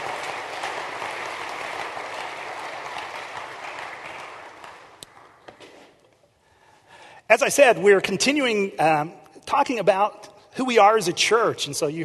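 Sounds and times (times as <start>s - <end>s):
room full of people clapping in sustained applause: 0.0s - 5.6s
speech: 7.3s - 12.0s.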